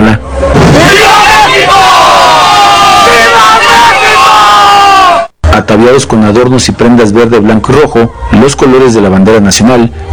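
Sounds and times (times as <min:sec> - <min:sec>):
large crowd shouting the independence cry: 0:00.5 - 0:05.4
speech: 0:05.8 - 0:10.1.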